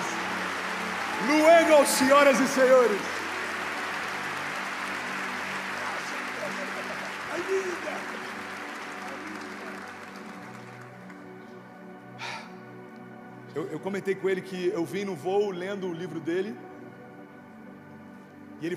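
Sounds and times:
audience applause: 0:00.0 - 0:11.4
speech: 0:01.2 - 0:03.2, 0:13.6 - 0:16.7, 0:18.6 - 0:18.7.

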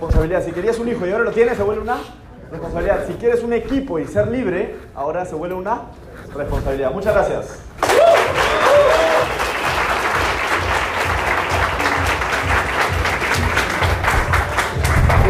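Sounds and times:
speech: 0:00.0 - 0:08.4
audience applause: 0:07.8 - 0:15.2.

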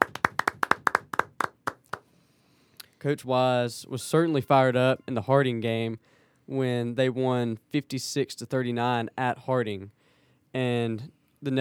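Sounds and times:
audience clapping: 0:00.0 - 0:02.0
speech: 0:03.0 - 0:11.6.

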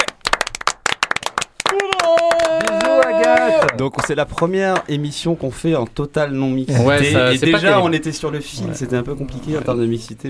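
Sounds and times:
a few people clapping hands: 0:00.0 - 0:05.0
speech: 0:03.5 - 0:10.2.

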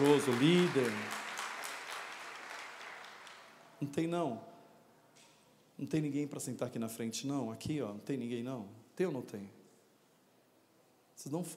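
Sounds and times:
audience applause: 0:00.0 - 0:03.6
speech: 0:00.1 - 0:01.2, 0:03.8 - 0:04.5, 0:05.8 - 0:09.6, 0:11.2 - 0:11.5.

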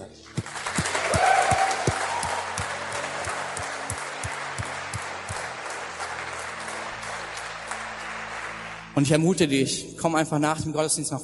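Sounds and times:
audience applause: 0:00.2 - 0:09.2
speech: 0:09.0 - 0:11.2.

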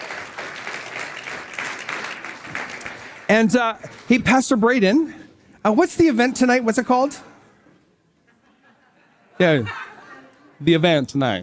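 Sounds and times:
audience round of applause: 0:00.0 - 0:04.1
speech: 0:03.3 - 0:07.3, 0:09.4 - 0:09.8, 0:10.6 - 0:11.4
laughter: 0:08.2 - 0:10.6.

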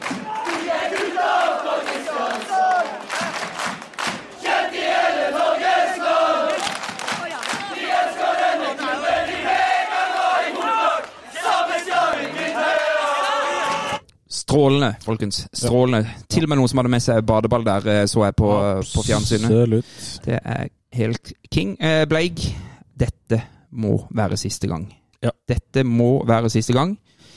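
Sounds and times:
massed cheering and chanting voices: 0:00.0 - 0:14.0
speech: 0:14.6 - 0:27.1.

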